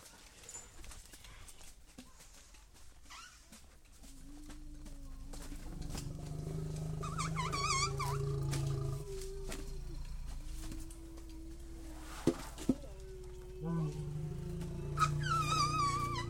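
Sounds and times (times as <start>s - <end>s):
Asian elephant giving loud rough calls in Thailand: 4.1s - 16.2s.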